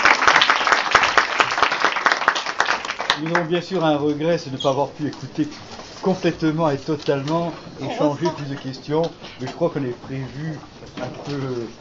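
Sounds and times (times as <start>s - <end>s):
audience applause: 0.0s - 3.6s
speech: 3.2s - 11.7s.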